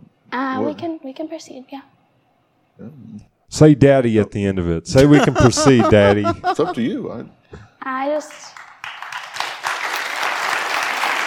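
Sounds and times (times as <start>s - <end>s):
speech: 0.3s - 1.9s, 2.8s - 8.7s
laughter: 5.0s - 7.0s
crowd applause: 8.6s - 11.2s.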